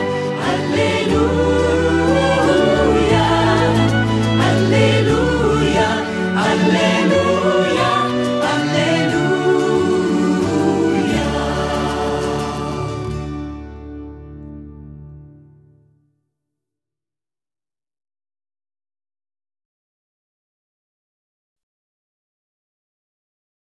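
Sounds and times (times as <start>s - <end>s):
sung alleluia: 0.0s - 13.9s.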